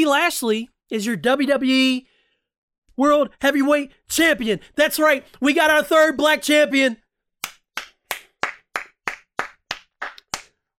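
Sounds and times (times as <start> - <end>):
speech: 0.0 - 2.1, 3.0 - 7.0
clapping: 7.4 - 10.6.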